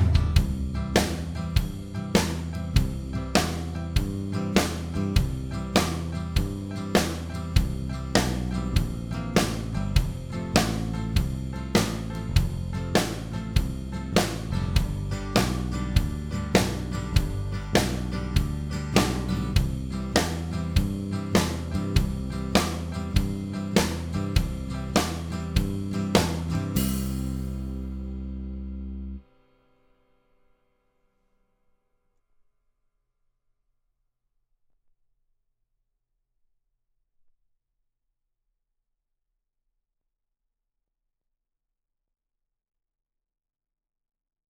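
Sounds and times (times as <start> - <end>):
beginner country bend solo: 0.2 - 29.2
backing tracks: 0.5 - 26.8.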